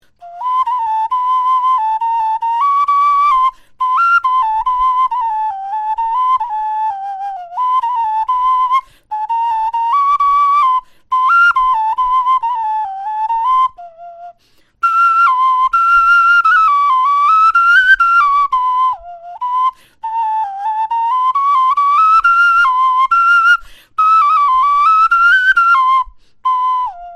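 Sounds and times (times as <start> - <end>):
bone flute melody: 0.2 - 27.1.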